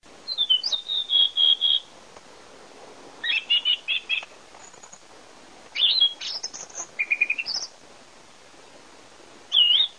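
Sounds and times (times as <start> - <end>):
thrush singing: 0.3 - 1.9, 3.2 - 4.3, 5.8 - 7.7, 9.5 - 9.9.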